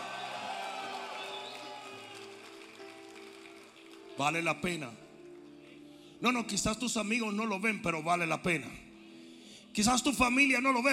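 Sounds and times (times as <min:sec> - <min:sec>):
audience shouting praise: 0:00.0 - 0:02.1
audience applauding: 0:00.0 - 0:05.5
speech: 0:04.2 - 0:05.0, 0:06.2 - 0:08.9, 0:09.8 - 0:10.9.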